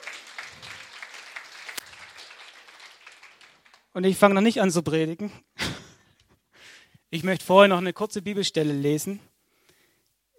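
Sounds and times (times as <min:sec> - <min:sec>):
audience applause: 0:00.0 - 0:03.9
speech: 0:04.0 - 0:05.5, 0:07.1 - 0:09.3.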